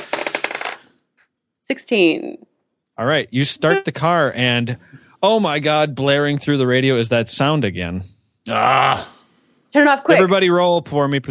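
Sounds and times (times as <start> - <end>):
die rolling across a table: 0.0 - 0.8
speech: 1.7 - 11.3.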